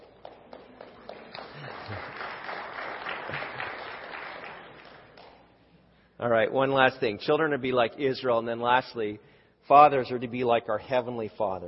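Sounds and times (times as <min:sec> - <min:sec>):
parents applauding for their children: 0:00.2 - 0:05.4
speech: 0:06.2 - 0:11.6.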